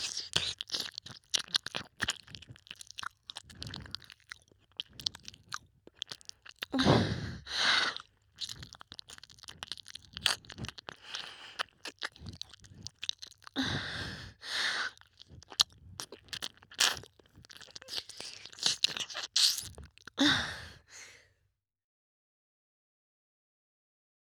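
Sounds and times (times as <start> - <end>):
ASMR ear licking sounds: 0.0 - 6.9, 7.5 - 13.6, 14.8 - 20.2.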